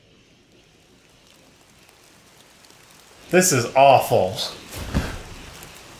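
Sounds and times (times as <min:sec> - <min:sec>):
rain falling: 0:00.0 - 0:05.9
speech: 0:03.3 - 0:04.9
low thump: 0:04.7 - 0:05.9.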